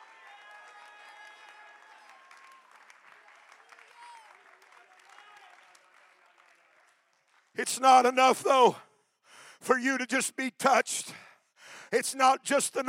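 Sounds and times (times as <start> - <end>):
audience clapping hands: 0.0 - 7.8
speech: 7.6 - 8.9, 9.6 - 11.2, 11.9 - 12.8.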